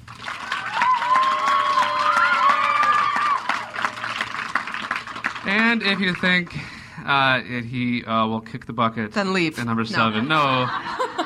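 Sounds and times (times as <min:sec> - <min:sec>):
crowd clapping and cheering: 0:00.0 - 0:06.7
speech: 0:05.5 - 0:11.0
laughter: 0:09.9 - 0:11.2.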